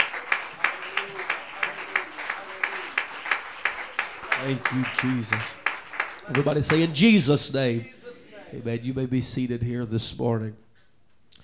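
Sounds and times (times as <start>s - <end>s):
audience clapping hands: 0.0s - 7.8s
speech: 4.4s - 5.6s, 6.3s - 10.6s.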